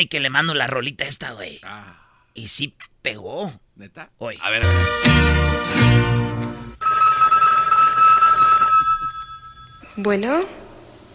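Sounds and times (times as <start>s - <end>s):
speech: 0.0s - 6.1s, 10.0s - 10.6s
telephone ringing for incoming call: 6.8s - 10.0s.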